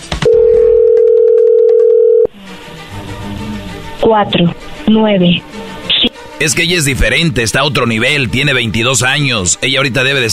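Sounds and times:
telephone dial tone: 0.3 - 2.3
speech: 4.0 - 5.6, 6.4 - 10.3.

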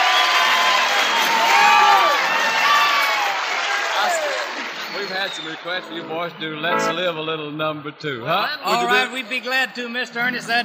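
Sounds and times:
shrill whoops from the audience: 0.0 - 3.4
Grand Ole Opry audience roar welcoming performers in 1952: 0.0 - 7.0
audience whistles: 4.7 - 6.0
speech: 5.3 - 10.6.

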